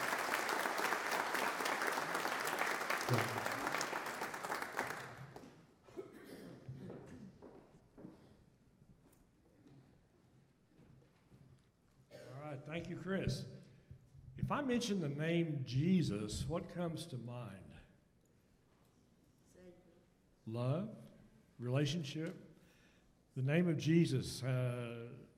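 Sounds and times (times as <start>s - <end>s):
large audience applause: 0.0s - 5.6s
speech: 3.1s - 3.6s, 13.0s - 13.5s, 14.5s - 17.7s, 20.5s - 21.0s, 21.6s - 22.4s, 23.4s - 25.3s.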